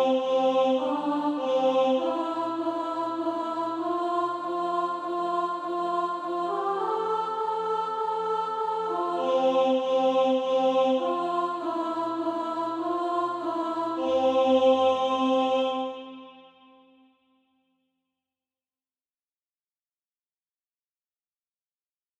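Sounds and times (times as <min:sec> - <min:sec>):
alto voice singing SATB practice music: 0:00.0 - 0:17.0.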